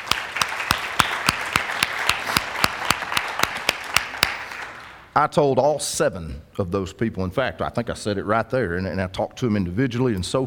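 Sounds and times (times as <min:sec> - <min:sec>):
audience applause: 0:00.0 - 0:05.0
speech: 0:05.2 - 0:10.4.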